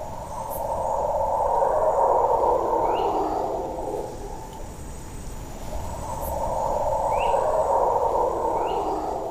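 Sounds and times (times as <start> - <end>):
howler monkeys calling in the distance: 0.0 - 4.8, 5.6 - 9.2.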